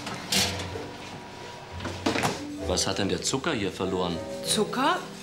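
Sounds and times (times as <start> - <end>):
kitchen oven door opened partway through cooking: 0.1 - 0.8
speech: 2.7 - 5.1.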